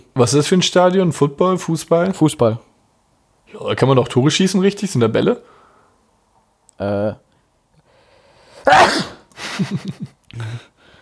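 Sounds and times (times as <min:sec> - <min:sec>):
speech: 0:00.2 - 0:02.7, 0:03.5 - 0:05.6, 0:06.8 - 0:07.2, 0:09.6 - 0:10.7
person sneezing: 0:08.6 - 0:09.3
laughter: 0:09.4 - 0:10.6.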